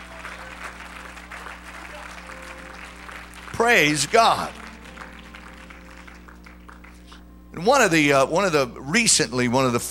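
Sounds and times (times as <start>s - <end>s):
audience clapping: 0.0s - 7.3s
low electrical hum: 0.0s - 9.9s
speech: 3.6s - 4.6s, 7.6s - 9.9s.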